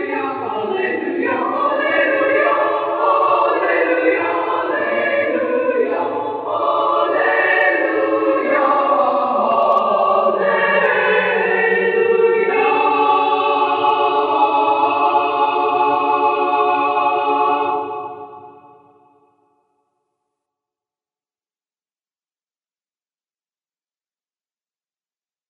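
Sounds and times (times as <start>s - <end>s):
women's chorale singing a cappella: 0.0s - 19.1s.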